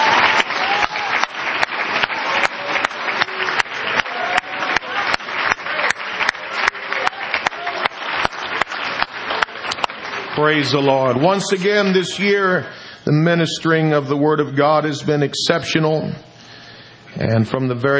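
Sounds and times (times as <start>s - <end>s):
audience hand clapping: 0.0s - 12.0s
speech: 10.4s - 16.3s, 17.2s - 17.9s.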